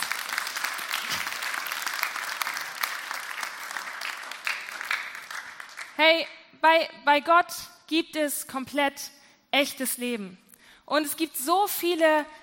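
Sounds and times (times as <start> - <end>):
audience clapping: 0.0 - 6.0
speech: 6.0 - 12.4.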